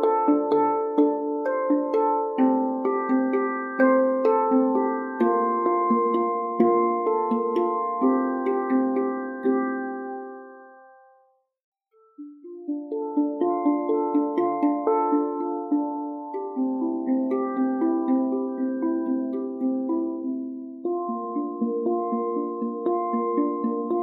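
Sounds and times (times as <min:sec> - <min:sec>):
ten-note handpan in D minor: 0:00.0 - 0:11.2, 0:12.0 - 0:24.0.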